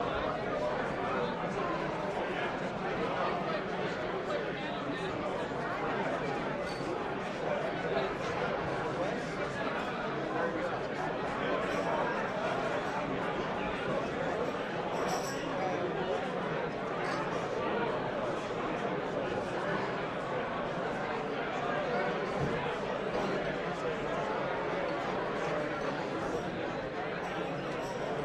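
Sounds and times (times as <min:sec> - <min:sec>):
party walla hubbub: 0:00.0 - 0:28.2.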